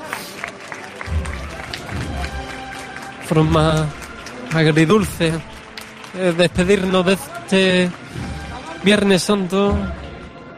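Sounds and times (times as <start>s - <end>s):
neighbourhood crowd clapping for a Good Friday procession: 0.0s - 10.4s
speech: 3.3s - 5.5s, 6.1s - 8.1s, 8.8s - 10.0s.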